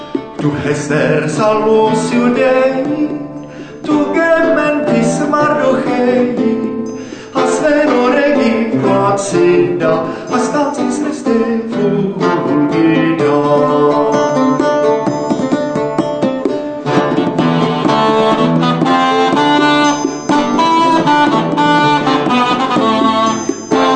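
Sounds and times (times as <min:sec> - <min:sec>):
lute: 0:00.0 - 0:23.9
cornamusa bagpipe: 0:16.9 - 0:23.9.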